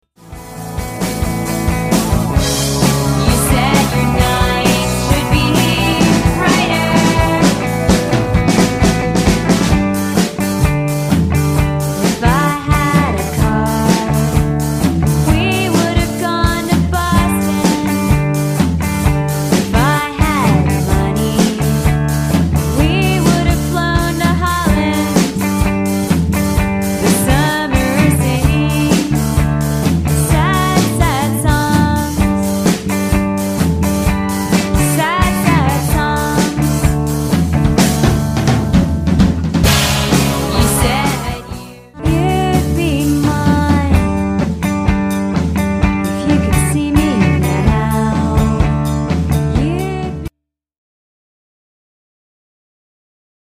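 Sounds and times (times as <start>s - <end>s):
drum: 0.2s - 50.0s.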